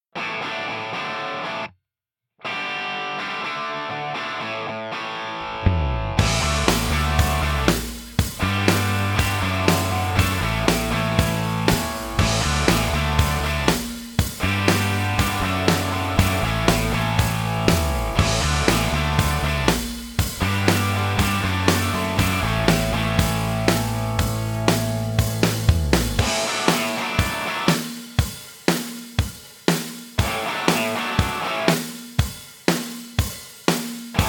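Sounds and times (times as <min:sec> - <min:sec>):
rock and roll guitar instrumental: 0:00.2 - 0:01.7, 0:02.4 - 0:34.2.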